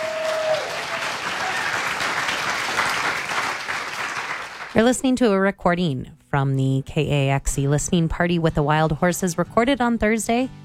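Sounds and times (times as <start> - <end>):
room full of people applauding: 0.0 - 4.8
speech: 4.7 - 10.6.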